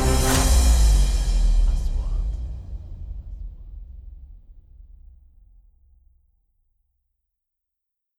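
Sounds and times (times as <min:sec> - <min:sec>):
corporate music: 0:00.0 - 0:02.3.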